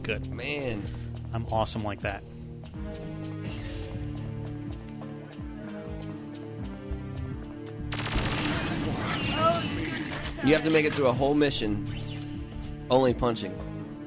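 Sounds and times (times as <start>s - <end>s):
speech: 0.0s - 3.7s, 9.6s - 12.0s, 12.9s - 13.6s
steady tonal video game music: 0.0s - 14.0s
video game gunfire: 7.9s - 11.0s.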